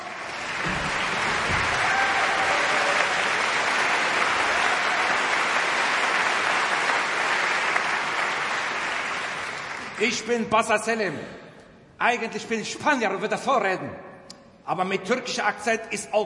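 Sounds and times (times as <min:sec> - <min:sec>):
audience applause: 0:00.0 - 0:10.2
speech: 0:10.0 - 0:11.4, 0:12.0 - 0:14.0, 0:14.7 - 0:16.2.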